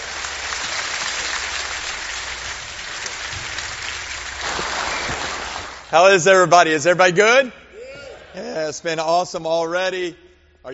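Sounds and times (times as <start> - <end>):
audience applause welcoming evangelist Shane Pruitt at the Iron Man Conference: 0.0 - 5.9
speech: 5.9 - 7.6, 8.4 - 10.7.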